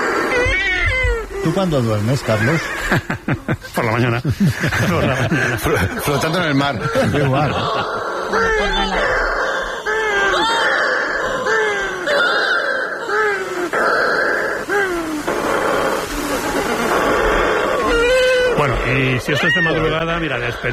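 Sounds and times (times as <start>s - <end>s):
shearwater colony calling at night: 0.0s - 20.7s
laughter: 1.4s - 9.3s
speech: 1.4s - 9.4s, 18.9s - 20.7s.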